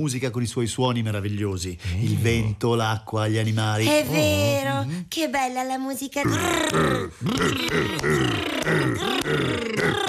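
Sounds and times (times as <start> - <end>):
speech: 0.0 - 10.0
voice imitating a caveman grunting in fear: 6.3 - 10.0.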